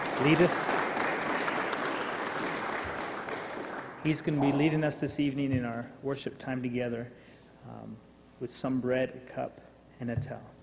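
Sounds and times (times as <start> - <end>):
audience applause at an evening worship gathering: 0.0 - 4.9
speech: 0.2 - 0.8, 4.0 - 10.6.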